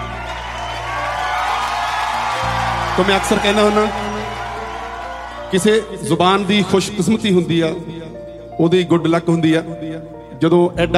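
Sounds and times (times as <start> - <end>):
audience cheering and applauding for poet Surjit Patar: 0.0 - 7.1
speech: 3.0 - 4.1, 5.5 - 8.0, 8.6 - 10.9.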